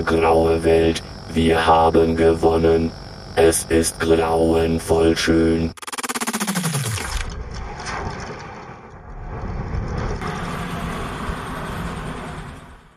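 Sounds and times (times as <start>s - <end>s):
speech: 0.0s - 5.8s
low whine: 0.0s - 12.9s
tower machinery sputtering: 5.7s - 12.9s.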